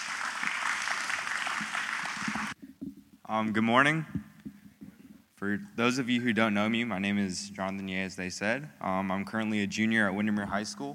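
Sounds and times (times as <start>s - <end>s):
church congregation applauding at a morning service: 0.0s - 2.6s
speech: 3.3s - 4.2s, 5.4s - 10.9s.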